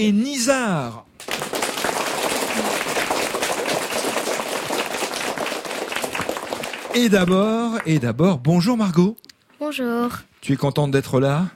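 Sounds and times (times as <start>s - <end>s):
speech: 0.0s - 1.1s, 6.9s - 11.5s
room full of children applauding: 1.2s - 7.9s.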